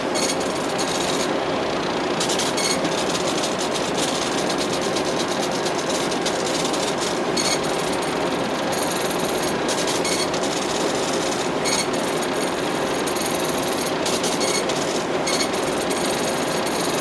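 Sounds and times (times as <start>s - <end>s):
printer printing: 0.0s - 17.0s.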